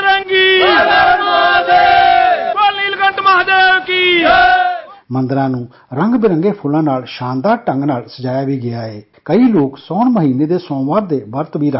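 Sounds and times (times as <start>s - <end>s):
devotees in a temple chanting praises of Lord Shiva: 0.2s - 5.0s
speech: 5.1s - 11.7s.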